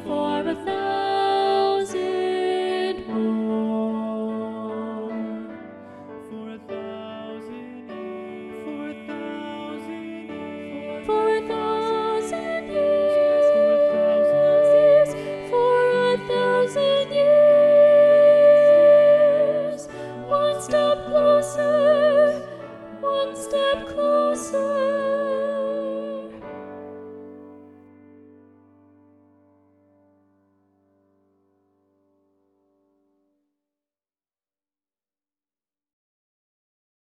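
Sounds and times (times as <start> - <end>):
soprano singing: 0.0 - 27.4.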